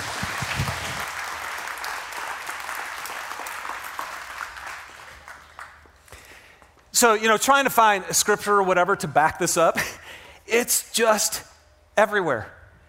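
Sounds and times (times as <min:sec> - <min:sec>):
audience applause: 0:00.0 - 0:05.9
speech: 0:07.0 - 0:12.6.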